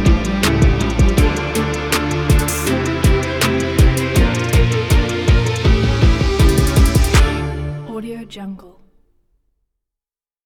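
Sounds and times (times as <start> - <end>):
sports orchestral hip hop music: 0.0 - 8.0.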